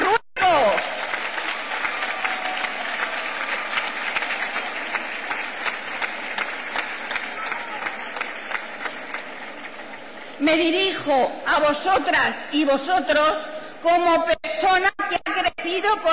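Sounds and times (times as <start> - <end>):
crowd applauding loudly: 0.0 - 11.0
speech: 10.5 - 15.0, 15.7 - 16.1.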